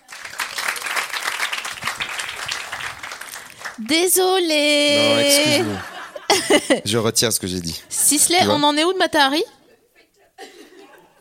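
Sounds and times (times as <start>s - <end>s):
audience applause: 0.0s - 4.0s, 4.8s - 6.1s
speech: 3.8s - 5.9s, 6.5s - 9.6s
laughter: 4.8s - 7.0s, 7.6s - 8.7s, 9.6s - 11.1s.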